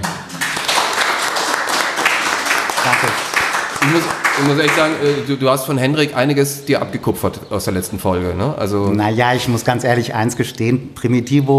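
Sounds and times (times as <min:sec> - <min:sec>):
applause: 0:00.0 - 0:05.4
speech: 0:02.8 - 0:03.2, 0:03.9 - 0:11.5.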